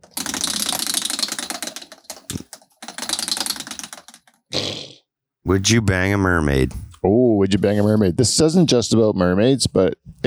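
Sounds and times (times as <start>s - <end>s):
wheel being spun with ratcheting clicks: 0.0s - 4.4s
speech: 5.5s - 10.2s.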